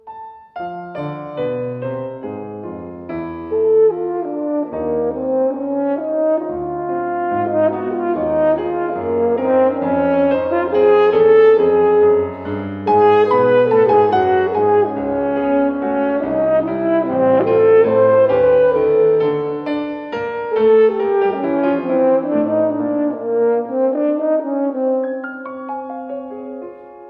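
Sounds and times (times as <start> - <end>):
ballade for horn and piano: 0.0 - 27.0.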